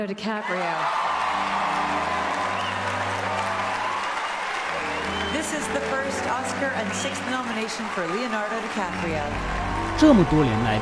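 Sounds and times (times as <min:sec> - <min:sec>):
speech: 0:00.0 - 0:02.2, 0:05.4 - 0:10.8
audience applause: 0:00.4 - 0:10.8.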